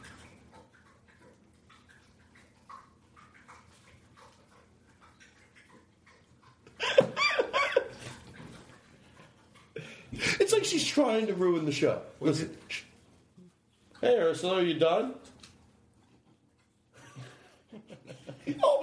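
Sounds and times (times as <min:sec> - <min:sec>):
pet lapping drinking water: 0:00.0 - 0:18.8
speech: 0:10.6 - 0:12.8, 0:14.1 - 0:15.2.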